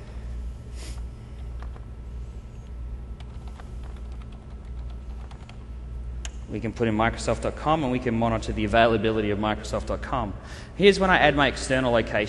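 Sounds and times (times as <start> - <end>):
low hum: 0.0 - 12.2
typing on a computer keyboard: 3.2 - 5.6
speech: 6.5 - 12.2.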